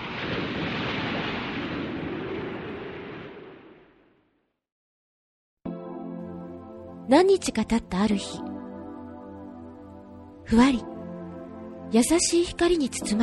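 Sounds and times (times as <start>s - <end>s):
heavy downpour of rain: 0.0s - 3.4s
speech: 7.1s - 8.5s, 10.5s - 10.9s, 11.9s - 13.2s.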